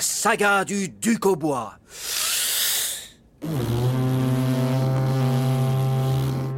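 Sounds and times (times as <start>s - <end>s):
speech: 0.0s - 2.0s, 3.4s - 3.8s
foghorn call: 3.4s - 6.5s.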